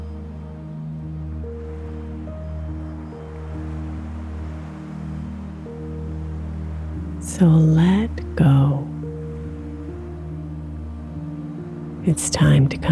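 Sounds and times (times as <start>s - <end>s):
flowing water: 0.0s - 12.9s
low droning musical tones: 0.0s - 12.9s
speech: 7.4s - 8.8s, 12.1s - 12.9s.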